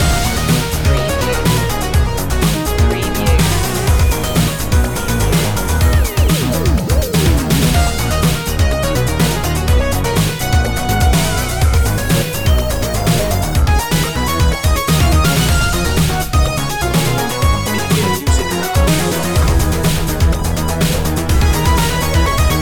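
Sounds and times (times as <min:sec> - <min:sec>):
industrial zone ambience: 0:00.0 - 0:22.6.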